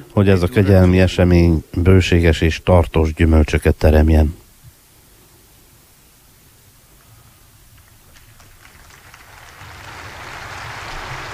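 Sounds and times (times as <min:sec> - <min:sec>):
speech: 0:00.0 - 0:04.4
audience applause: 0:07.7 - 0:11.3.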